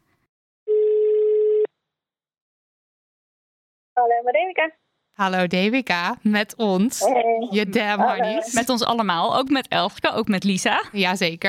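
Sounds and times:
telephone ringing tone while placing a call: 0:00.7 - 0:01.7
speech: 0:04.0 - 0:11.4.

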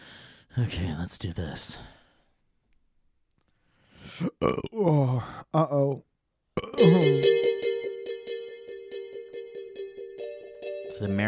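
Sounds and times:
speech: 0:00.6 - 0:02.0, 0:04.4 - 0:07.4, 0:11.0 - 0:11.2
electronic keyboard synth tone: 0:06.8 - 0:11.2.

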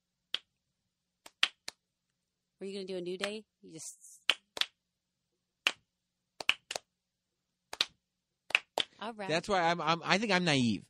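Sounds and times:
slow hand clapping: 0:01.2 - 0:01.8, 0:04.3 - 0:04.8, 0:05.6 - 0:05.8, 0:06.4 - 0:06.9, 0:07.7 - 0:08.9
speech: 0:02.6 - 0:04.3, 0:09.0 - 0:10.8.

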